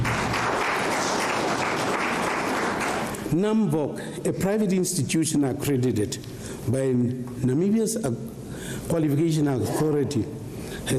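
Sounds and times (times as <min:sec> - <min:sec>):
round of applause: 0:00.0 - 0:03.3
speech: 0:03.3 - 0:10.9.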